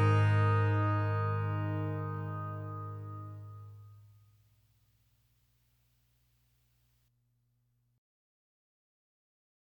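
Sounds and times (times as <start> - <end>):
train song: 0.0 - 3.8.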